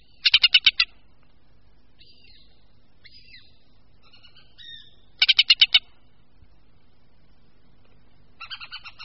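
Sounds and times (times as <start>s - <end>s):
hen harrier chattering calls: 0.0s - 1.0s, 2.0s - 6.0s, 8.4s - 9.0s.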